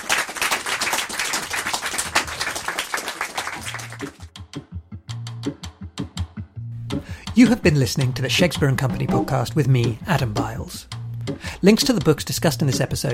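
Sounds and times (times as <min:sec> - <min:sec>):
audience applause: 0:00.0 - 0:04.3
speech: 0:07.4 - 0:13.1.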